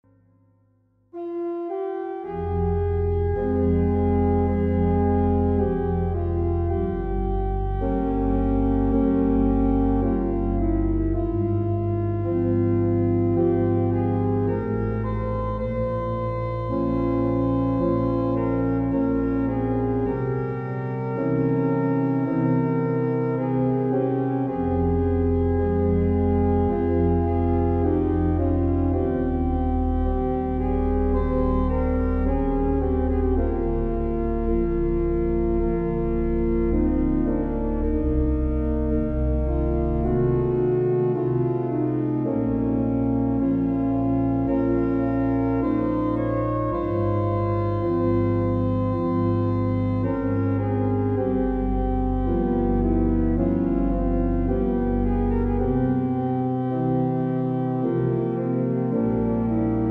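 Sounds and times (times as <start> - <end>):
organ adagio in F minor with reverb: 1.2 - 59.8.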